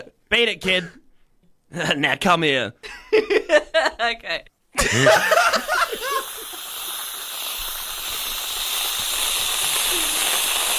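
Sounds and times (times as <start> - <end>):
speech: 0.3 - 1.0, 1.7 - 5.7
laughter: 4.8 - 6.4
whipped cream can spraying: 5.2 - 10.7.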